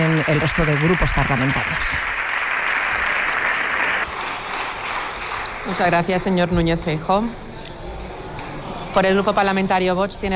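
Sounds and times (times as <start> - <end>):
parliamentary bench standing and applauding: 0.0 - 6.2
speech: 0.2 - 2.2, 5.6 - 7.4, 9.0 - 10.3.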